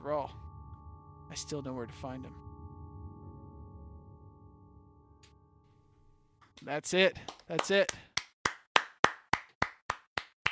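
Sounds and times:
speech: 0.0 - 0.4, 1.3 - 2.5, 6.6 - 8.1
hand clapping: 6.4 - 10.5.

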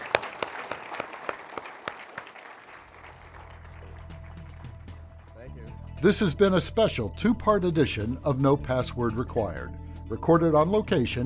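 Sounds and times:
audience applause for panelists: 0.0 - 5.6
speech: 6.0 - 11.2.

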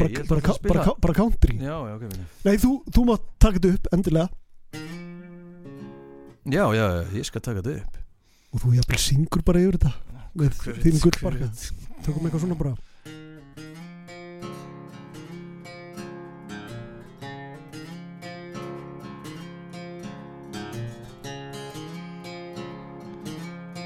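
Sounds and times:
small guitar from the Hljóðfærahúsið being played: 0.0 - 1.1, 4.7 - 6.8, 12.0 - 23.8
speech: 0.1 - 5.0, 6.4 - 13.7.

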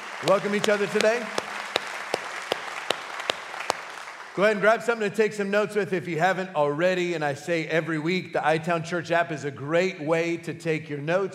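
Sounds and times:
church congregation applauding: 0.0 - 5.0
sharp evenly spaced loud claps: 0.0 - 5.0
speech: 0.2 - 1.4, 4.4 - 11.3.

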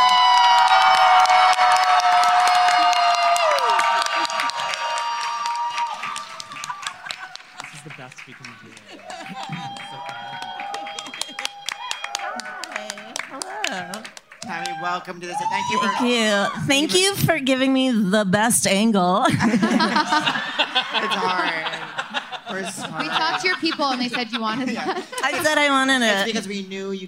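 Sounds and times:
audience applause and cheering for a comedian: 0.0 - 17.1
laughter: 6.2 - 14.8, 19.2 - 26.4
speech: 15.1 - 20.6, 23.6 - 27.0.

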